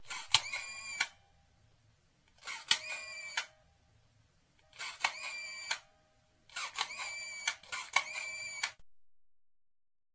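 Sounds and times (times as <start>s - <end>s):
camera: 0.0s - 1.2s, 2.4s - 3.5s, 4.7s - 5.9s, 6.5s - 8.8s.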